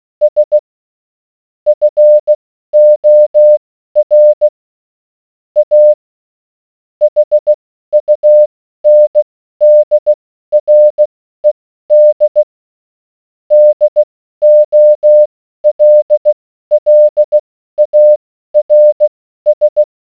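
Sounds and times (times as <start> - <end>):
morse code beeps: 0.2 - 0.6, 1.7 - 4.5, 5.6 - 6.0, 7.0 - 12.4, 13.5 - 19.9.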